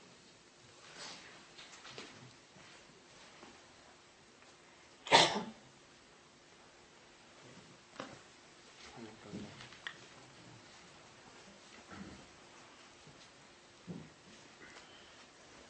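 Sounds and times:
soft clicks and rustles: 0.2s - 4.7s, 7.3s - 15.6s
student sneezing during a study session: 5.0s - 5.6s.

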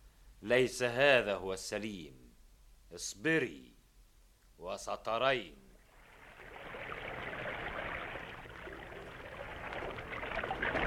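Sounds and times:
speech: 0.4s - 2.2s, 2.9s - 3.8s, 4.6s - 5.6s
water lapping as a small boat moves toward a ship: 5.9s - 10.8s.

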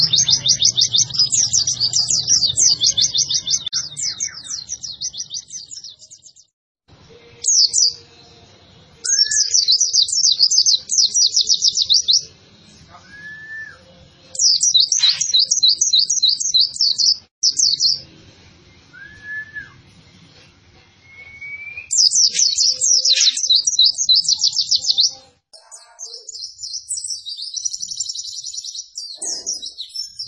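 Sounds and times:
white-eye twittering song: 0.0s - 6.5s, 9.0s - 18.1s, 21.9s - 30.2s.

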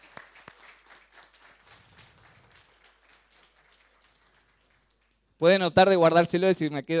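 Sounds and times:
audience applauding: 0.0s - 5.1s
speech: 5.4s - 6.9s.

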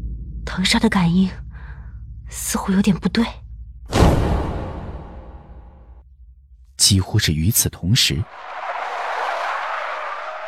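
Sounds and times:
speech: 0.5s - 1.4s, 2.3s - 3.4s, 6.8s - 8.5s
car tires skidding under hard emergency braking at night: 8.3s - 10.4s.

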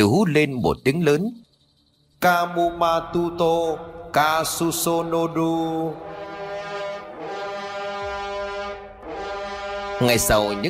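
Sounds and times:
speech: 0.0s - 1.4s, 2.2s - 6.3s, 10.0s - 10.6s
long blast on a horn trumpet: 4.2s - 10.6s.

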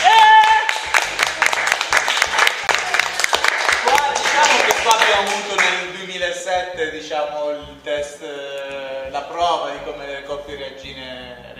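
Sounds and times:
applause: 0.0s - 5.8s
speech: 9.1s - 11.5s.

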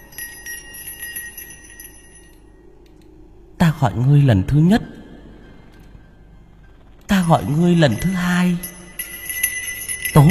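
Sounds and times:
bell ringing: 0.0s - 2.6s, 7.1s - 10.3s
speech: 3.8s - 4.9s, 7.3s - 8.7s, 10.2s - 10.3s.

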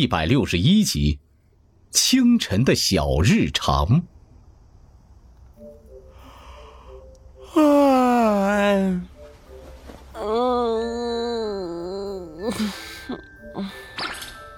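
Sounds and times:
speech: 0.0s - 1.2s, 1.9s - 4.1s, 7.5s - 9.1s
person yawning: 7.4s - 8.5s, 10.2s - 13.8s.

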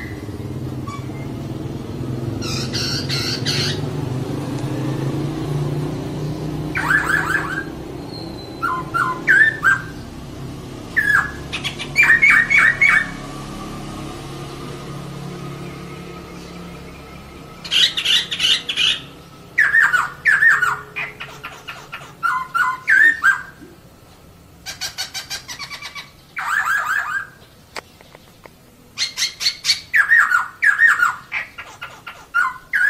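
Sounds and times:
laughingthrush singing: 0.0s - 23.9s, 24.6s - 32.8s
low droning background: 0.0s - 24.7s.

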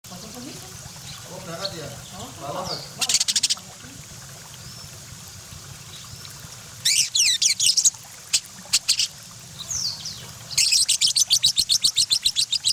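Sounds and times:
parakeet chattering warbling song: 1.1s - 3.7s, 6.8s - 12.7s.

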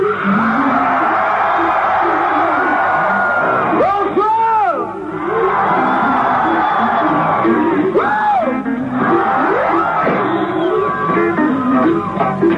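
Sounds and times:
concert crowd of some 30,000 to 40,000 people shouting together: 0.0s - 12.3s
individual concert-goers yelling and whooping: 0.0s - 12.4s.

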